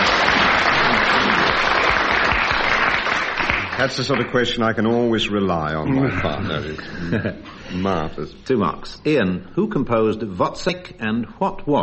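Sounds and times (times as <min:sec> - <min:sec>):
laughter: 0:00.0 - 0:02.0, 0:05.8 - 0:08.1
audience applause: 0:00.0 - 0:04.6
speech: 0:03.8 - 0:11.8.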